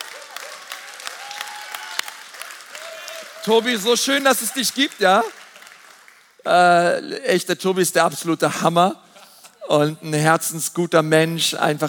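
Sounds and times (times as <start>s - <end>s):
crowd clapping: 0.0s - 6.4s
speech: 3.4s - 5.4s, 6.4s - 9.0s, 9.7s - 11.8s.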